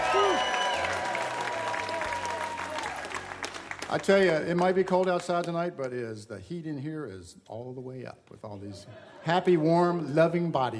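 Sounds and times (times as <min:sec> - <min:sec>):
audience clapping at a live music show in a Pensacola museum stage studio: 0:00.0 - 0:06.1
audience whistles: 0:00.1 - 0:01.0
speech: 0:03.9 - 0:10.7.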